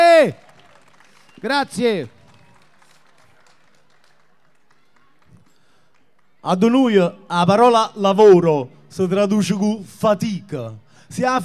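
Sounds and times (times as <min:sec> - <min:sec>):
festival audience applause: 0:00.0 - 0:06.4
speech: 0:00.2 - 0:00.4, 0:01.4 - 0:02.2, 0:06.4 - 0:11.4.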